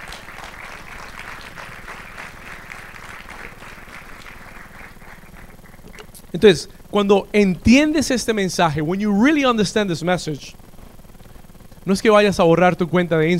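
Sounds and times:
crowd applauding: 0:00.0 - 0:06.2
speech: 0:06.3 - 0:10.6, 0:11.9 - 0:13.3.

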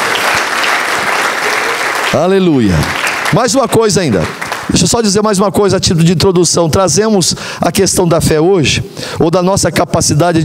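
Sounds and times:
crowd applause: 0:00.0 - 0:04.9
speech: 0:02.1 - 0:10.4.

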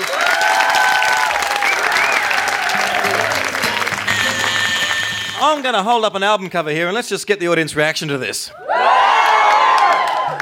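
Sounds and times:
audience applause for the cast at the 1993 Melbourne Comedy Festival: 0:00.0 - 0:05.8, 0:08.7 - 0:10.4
speech: 0:05.5 - 0:09.0.

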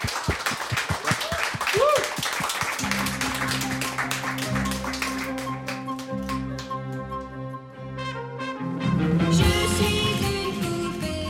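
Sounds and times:
hand claps: 0:00.0 - 0:07.3
musical tune: 0:02.8 - 0:11.2.

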